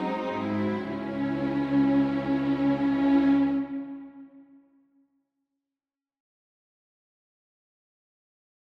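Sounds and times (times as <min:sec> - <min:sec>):
string quartet playing a prelude: 0:00.0 - 0:04.4.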